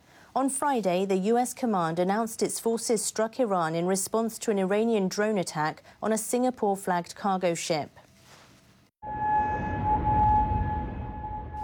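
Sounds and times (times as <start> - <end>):
speech: 0.4 - 8.0
air raid sirens wailing in Kuwait: 9.0 - 11.6.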